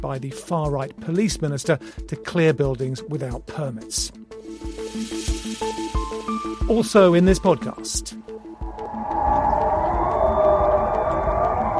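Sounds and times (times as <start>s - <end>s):
speech: 0.0s - 6.0s, 6.7s - 8.3s
low rumble: 8.4s - 11.7s
civil defense sirens wailing: 8.6s - 11.7s.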